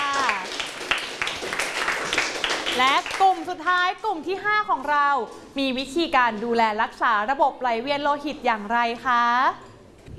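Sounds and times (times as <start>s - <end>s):
classroom students clapping for a classmate: 0.0s - 3.4s
speech: 2.8s - 10.1s.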